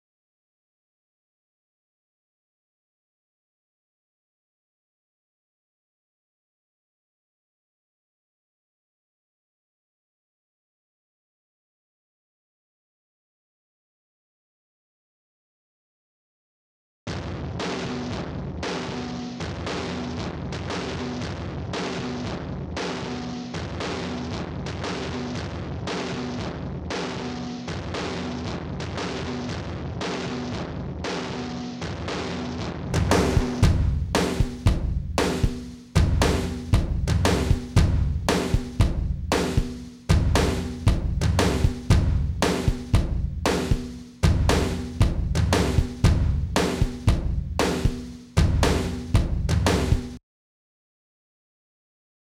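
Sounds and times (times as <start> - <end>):
drum kit: 17.2 - 50.2.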